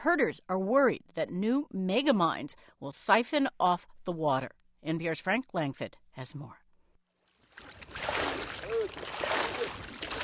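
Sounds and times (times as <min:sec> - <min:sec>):
speech: 0:00.0 - 0:06.6
herd of camels drinking from a well: 0:07.5 - 0:10.2.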